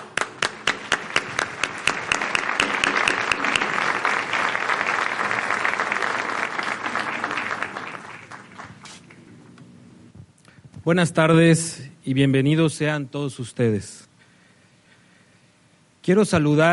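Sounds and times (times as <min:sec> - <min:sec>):
crowd applause: 0:00.0 - 0:09.4
speech: 0:10.9 - 0:14.1, 0:16.0 - 0:16.7.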